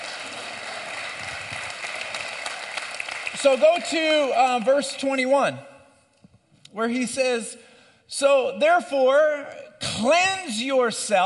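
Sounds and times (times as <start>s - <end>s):
crowd applause: 0.0s - 4.8s
speech: 3.4s - 5.7s, 6.8s - 11.2s.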